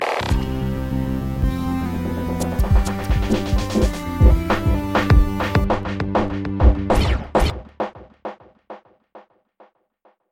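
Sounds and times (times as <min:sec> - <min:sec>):
instrumental music: 0:00.3 - 0:08.0.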